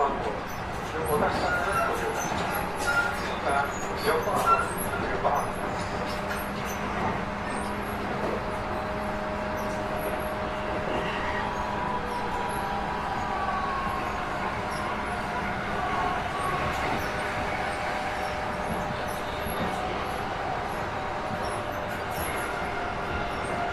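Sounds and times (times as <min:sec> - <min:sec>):
Yokosuka Sobu Rapid 253 train: 0:00.0 - 0:23.7.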